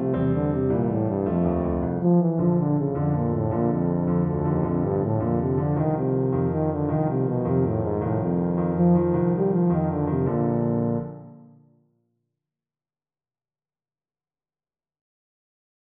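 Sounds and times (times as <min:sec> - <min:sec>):
tuba playing a Mexican dance tune: 0:00.0 - 0:11.3.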